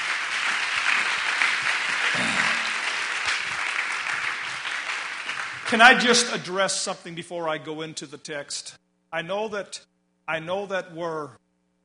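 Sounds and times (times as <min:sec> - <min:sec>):
audience applause: 0:00.0 - 0:06.3
speech: 0:05.7 - 0:11.4.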